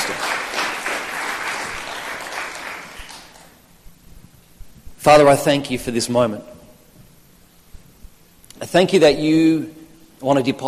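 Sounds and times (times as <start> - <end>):
audience applause, clapping: 0.0 - 3.8
speech: 5.0 - 6.6, 8.7 - 10.6.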